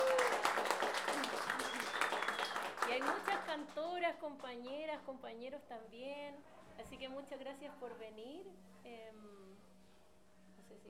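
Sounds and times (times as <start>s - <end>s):
crowd applause for a cueca singer at a women folk singers' gathering: 0.0s - 3.7s
speech: 3.1s - 9.4s.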